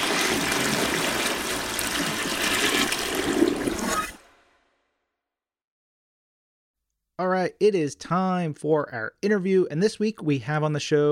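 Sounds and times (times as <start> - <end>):
toilet flushing: 0.0 - 4.3
speech: 7.2 - 11.1.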